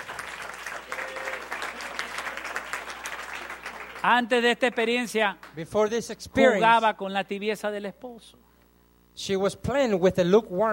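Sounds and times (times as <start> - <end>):
congregation applauding for the Lord during a church service: 0.0 - 5.6
speech: 4.0 - 8.5, 9.2 - 10.7.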